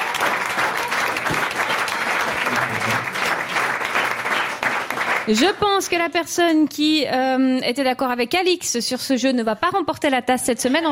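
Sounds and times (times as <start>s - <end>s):
audience applause: 0.0s - 6.2s
speech: 5.3s - 10.8s.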